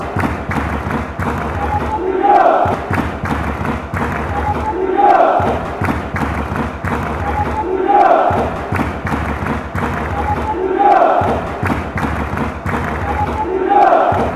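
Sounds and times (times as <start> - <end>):
chanting: 0.0 - 14.3.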